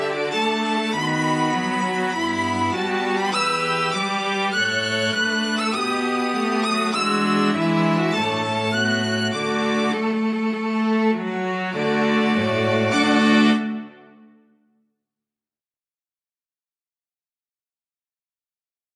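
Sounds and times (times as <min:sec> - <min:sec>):
string quartet: 0:00.0 - 0:14.4.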